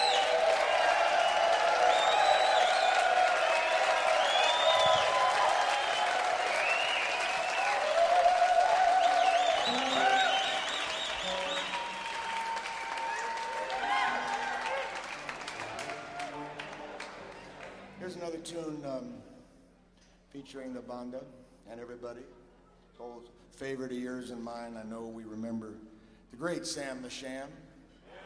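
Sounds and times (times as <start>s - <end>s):
audience cheering and applause: 0.0s - 17.8s
speech: 20.5s - 22.4s, 23.0s - 27.6s.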